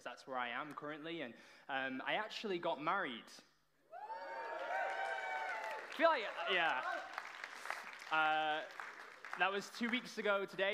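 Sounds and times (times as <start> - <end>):
speech: 0.2 - 3.5, 6.0 - 7.2, 8.1 - 8.8, 9.4 - 10.7
loud sustained voiced cheer: 3.9 - 7.1
audience clapping and cheering: 4.0 - 10.7.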